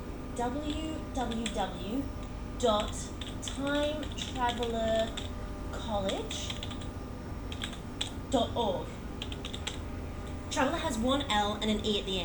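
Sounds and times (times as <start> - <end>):
speech: 0.4 - 6.7, 8.3 - 9.0, 10.6 - 12.2
typing a web address on a computer keyboard: 0.6 - 1.6, 2.7 - 5.3, 6.0 - 6.9, 7.5 - 8.2, 9.2 - 9.8.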